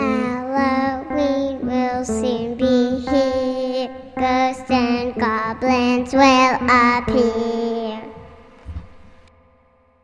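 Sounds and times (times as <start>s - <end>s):
Halloween vocals: 0.0s - 8.9s.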